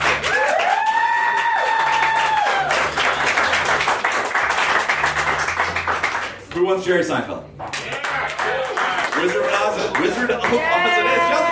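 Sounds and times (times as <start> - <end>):
crowd clapping: 0.0 - 6.8, 7.6 - 11.5
loud rising whoop or whistle: 0.3 - 2.7
speech: 6.6 - 7.6, 9.2 - 11.5.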